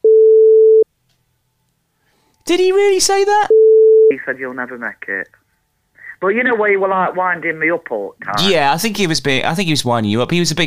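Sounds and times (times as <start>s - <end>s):
censor beep over a name: 0.0s - 0.8s
speech: 2.5s - 5.4s, 6.2s - 10.6s.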